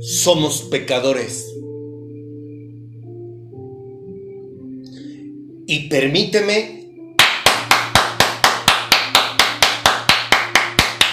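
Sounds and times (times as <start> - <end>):
speech: 0.0 - 1.7, 5.7 - 6.8
hand clapping applause: 7.2 - 11.1.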